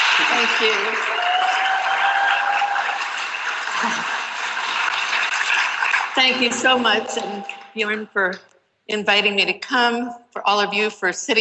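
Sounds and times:
audience applause: 0.0s - 7.7s
speech: 0.2s - 1.3s, 3.8s - 4.2s, 6.2s - 11.3s.

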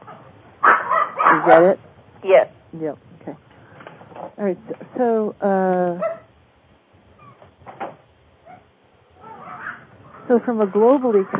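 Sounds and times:
dog barking behind a phone call: 0.6s - 1.6s
speech: 1.4s - 3.4s, 4.4s - 6.2s, 10.3s - 11.3s.

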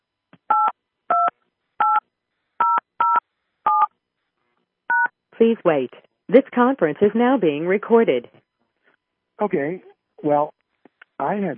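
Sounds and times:
touch-tone keypad beeps entering a PIN: 2.6s - 3.9s
speech: 5.4s - 8.4s, 9.4s - 10.6s, 11.2s - 11.5s.

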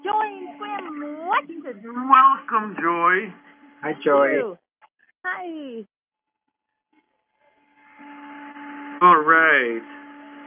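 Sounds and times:
computer fan humming: 0.0s - 4.6s, 7.6s - 10.4s
speech: 1.4s - 4.6s, 5.3s - 5.9s, 9.0s - 10.0s.

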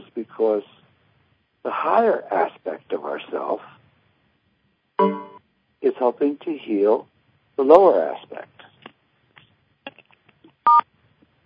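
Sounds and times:
speech: 0.4s - 0.8s, 1.6s - 3.7s, 5.8s - 8.6s
short electronic beep: 5.0s - 5.4s
faint soft clicks and rustles: 8.5s - 11.4s.

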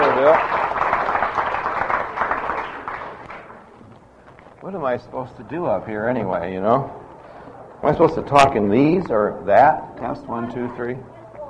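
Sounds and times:
audience applause: 0.0s - 3.6s
speech: 0.2s - 0.6s, 4.6s - 7.0s, 7.8s - 11.1s.

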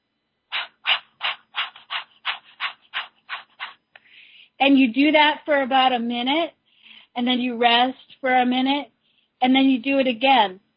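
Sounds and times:
Kapalabhati breathing with rapid forceful diaphragm exhalations: 0.5s - 4.2s
speech: 4.6s - 6.6s, 7.2s - 10.6s.

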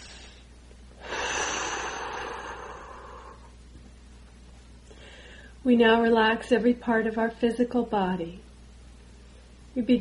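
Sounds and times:
person breathing in deeply during a relaxation exercise: 0.0s - 3.6s, 4.9s - 5.6s
speech: 5.7s - 8.4s, 9.8s - 9.9s.

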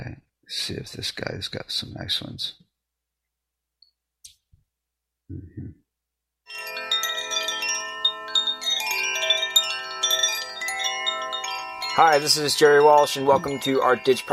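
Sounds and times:
speech: 0.5s - 2.6s, 5.3s - 5.8s, 12.0s - 14.3s
Koshi chimes ringing: 6.5s - 14.3s.

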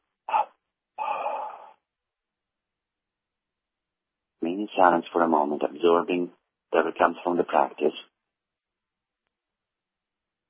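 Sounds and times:
breathing during a guided breathing exercise: 0.3s - 1.8s
speech: 4.6s - 8.1s.

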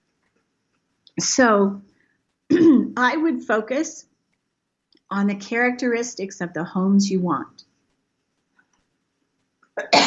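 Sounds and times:
speech: 1.2s - 1.9s, 2.6s - 4.1s, 5.1s - 7.7s
person coughing while nearly choking: 2.5s - 2.9s, 9.8s - 10.0s.

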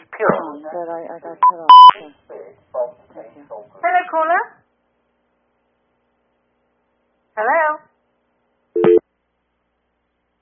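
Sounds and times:
speech: 0.2s - 4.6s, 7.4s - 7.9s
telephone busy tone after a caller was dropped from the line: 1.7s - 2.0s, 8.8s - 9.0s.

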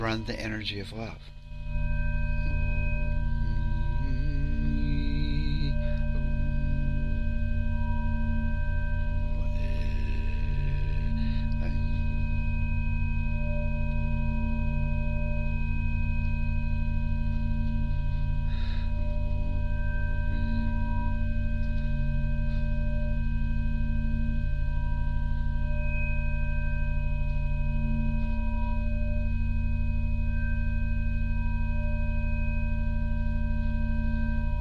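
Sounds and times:
speech: 0.0s - 1.8s
steady electronic sine tones for sound healing: 0.0s - 34.5s
faint voices humming or singing along: 2.6s - 6.8s, 9.3s - 12.4s.

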